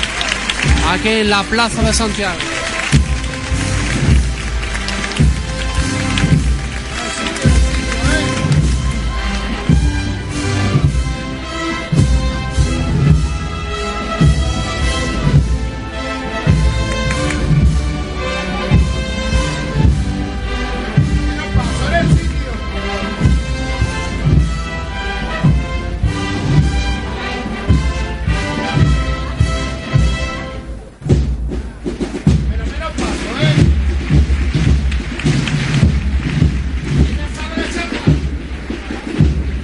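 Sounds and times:
band playing a processional march at night in the Plaza de Santiago: 0.0s - 39.6s
speech: 0.9s - 2.5s.

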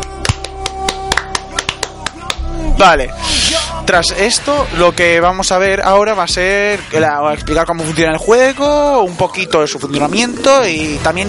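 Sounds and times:
hands clapping: 0.0s - 2.5s
low hum: 2.3s - 4.2s
speech: 2.8s - 11.2s.

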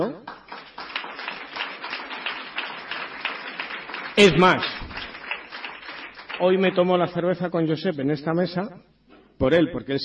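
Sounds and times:
audience applause: 0.3s - 6.8s
speech: 4.2s - 4.8s, 6.4s - 8.8s, 9.4s - 10.0s.

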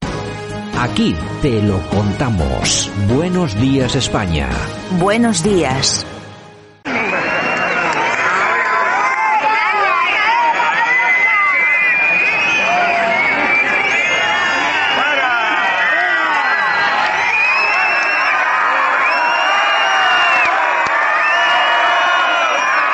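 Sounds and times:
speech: 0.8s - 6.2s
stadium crowd whistling in protest: 6.8s - 22.9s.

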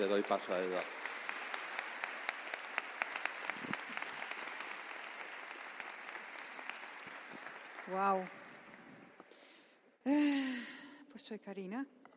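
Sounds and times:
speech: 0.0s - 1.1s, 7.9s - 8.4s, 10.0s - 10.6s, 11.2s - 12.0s
audience applause: 0.0s - 9.3s.

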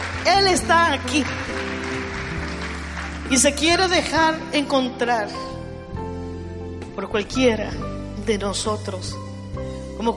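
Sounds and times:
audience applause: 0.0s - 4.0s
speech: 0.2s - 1.9s, 3.3s - 5.5s, 7.0s - 9.2s.

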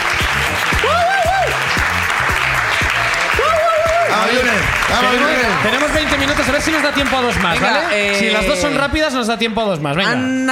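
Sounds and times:
crowd applauding: 0.0s - 9.2s
whoops and shouted voices: 0.8s - 1.6s, 3.3s - 4.4s
speech: 4.9s - 10.5s.

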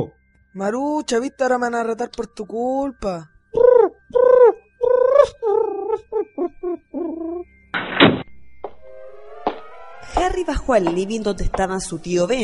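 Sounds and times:
speech: 0.0s - 3.3s, 4.1s - 4.6s, 10.1s - 12.4s
pigeon cooing: 3.6s - 7.5s.

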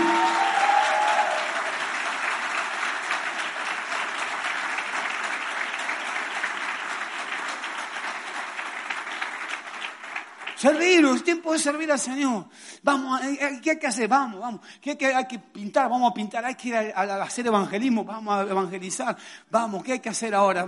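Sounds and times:
audience applause: 0.0s - 11.0s
speech: 10.6s - 20.6s.

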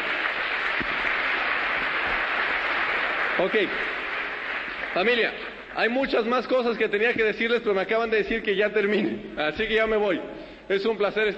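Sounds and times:
audience applause: 0.0s - 5.9s
speech: 3.4s - 4.0s, 5.0s - 11.3s.

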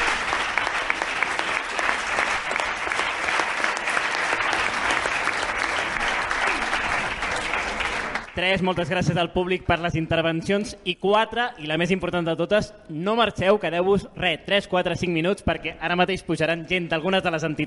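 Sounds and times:
audience applause: 0.0s - 8.5s
speech: 8.4s - 17.6s.

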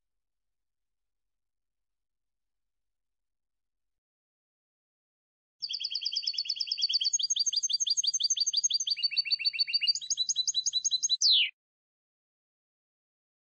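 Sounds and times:
goldfinch singing: 5.6s - 11.5s.

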